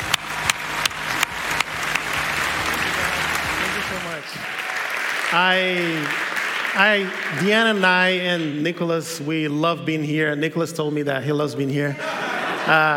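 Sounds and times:
audience applause in church: 0.0s - 8.6s
laughter: 1.4s - 4.6s, 11.8s - 12.9s
speech: 5.4s - 6.2s, 6.8s - 12.9s.

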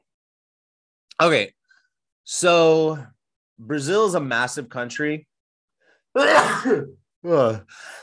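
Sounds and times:
speech: 1.2s - 1.6s, 2.3s - 5.3s, 6.1s - 8.0s
sneeze: 6.2s - 7.0s.

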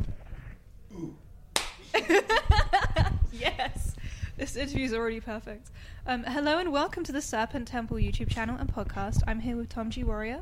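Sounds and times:
single hand clap: 1.5s - 1.8s
laughter: 1.8s - 3.9s
speech: 2.1s - 2.6s, 4.4s - 10.3s.

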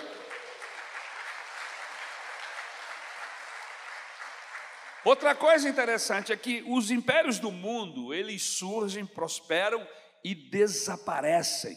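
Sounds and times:
large crowd applauding: 0.0s - 6.3s
speech: 5.0s - 11.7s.

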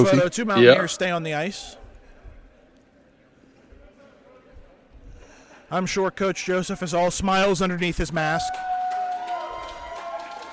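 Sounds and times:
speech: 0.0s - 1.8s, 5.7s - 8.7s
crowd applauding champions: 8.4s - 10.5s.

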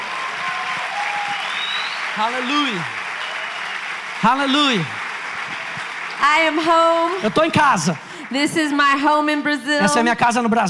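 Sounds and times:
audience applause: 0.0s - 10.1s
faint whistle-like tone: 1.4s - 2.7s
speech: 2.2s - 3.0s, 4.2s - 5.0s, 6.2s - 10.6s.

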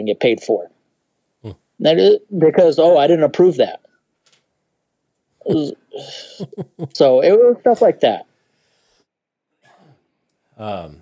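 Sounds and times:
speech: 0.0s - 0.8s, 1.4s - 3.9s, 5.4s - 8.3s, 10.6s - 11.0s
cough: 5.5s - 7.0s, 9.6s - 10.0s
rough cough or throat-clearing: 5.5s - 7.9s
laughter: 5.5s - 8.2s, 10.6s - 11.0s.

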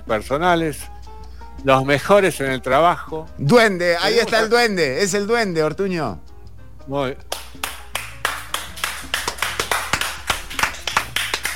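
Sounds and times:
speech: 0.1s - 1.0s, 1.6s - 6.3s, 6.9s - 7.6s
couple of audience members clapping: 7.3s - 11.5s.

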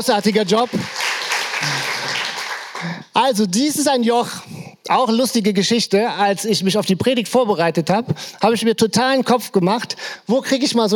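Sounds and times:
speech: 0.0s - 1.0s, 2.8s - 10.9s
audience applause: 0.1s - 3.0s.

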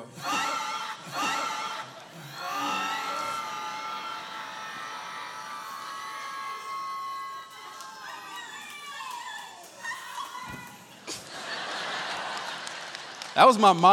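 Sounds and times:
laughter: 0.1s - 7.1s, 9.5s - 13.3s
family cheering and shouting in a hospital waiting room: 0.1s - 11.0s
speech: 13.4s - 13.9s.

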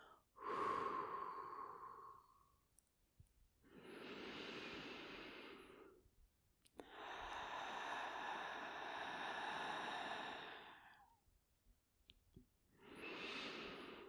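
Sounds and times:
slow deep breathing in through the nose and out through the open mouth: 0.0s - 2.5s, 3.6s - 6.0s, 6.8s - 11.2s, 12.7s - 14.0s.

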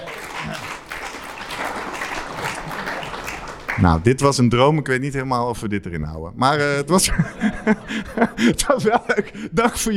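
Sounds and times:
applause from a group of people: 0.0s - 4.1s
speech: 0.4s - 0.7s, 3.8s - 9.9s
laughter: 1.6s - 3.4s, 7.0s - 9.8s.

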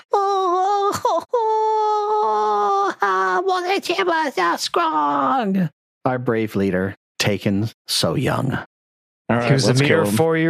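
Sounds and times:
human voice imitating a Mitflit wailing and keening in grief: 0.0s - 3.6s
speech: 3.8s - 8.7s, 9.3s - 10.4s.

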